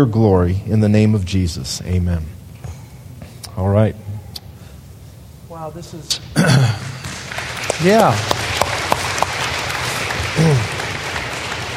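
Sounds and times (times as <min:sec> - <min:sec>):
speech: 0:00.0 - 0:02.4, 0:03.6 - 0:04.0, 0:05.6 - 0:06.9, 0:07.8 - 0:08.4, 0:10.4 - 0:10.7
audience clapping: 0:06.6 - 0:11.7.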